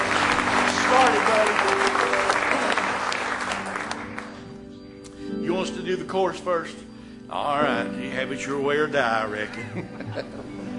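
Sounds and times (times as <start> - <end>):
audience applause: 0.0 - 4.6
speech: 6.1 - 10.5
laughter: 9.5 - 10.7.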